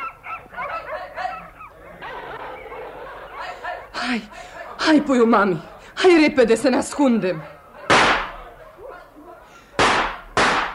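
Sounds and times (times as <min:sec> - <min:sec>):
faint murmuring: 0:00.0 - 0:09.8
laughter: 0:00.2 - 0:06.0
speech: 0:04.0 - 0:07.5
loud sharp gunshot blasts: 0:07.9 - 0:08.4, 0:09.8 - 0:10.7.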